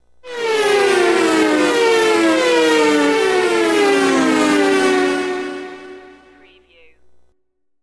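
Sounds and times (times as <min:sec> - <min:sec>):
fast cars passing by: 0:00.3 - 0:06.4.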